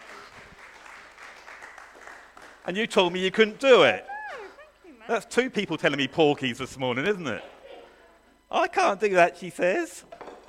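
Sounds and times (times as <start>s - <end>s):
round of applause from a group: 0.0s - 2.8s
speech: 2.6s - 4.1s, 5.1s - 7.5s, 8.5s - 10.2s.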